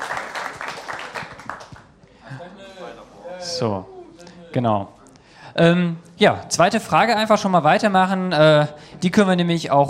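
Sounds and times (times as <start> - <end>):
audience applause: 0.0 - 1.9
speech: 3.6 - 5.0, 5.6 - 9.8.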